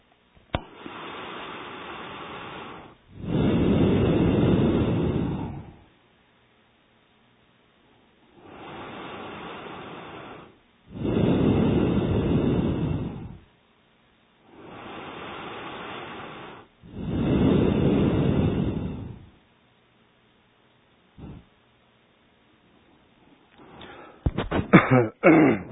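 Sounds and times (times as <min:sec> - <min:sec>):
breathing in and out through both nostrils during meditation: 0:00.6 - 0:05.9, 0:08.4 - 0:13.5, 0:14.5 - 0:19.4, 0:21.2 - 0:21.5, 0:23.4 - 0:24.7.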